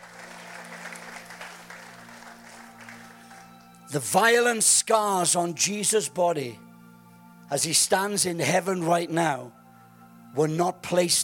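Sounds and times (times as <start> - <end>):
audience applauding: 0.0 - 3.8
speech: 3.9 - 6.6, 7.5 - 9.6, 10.3 - 11.2.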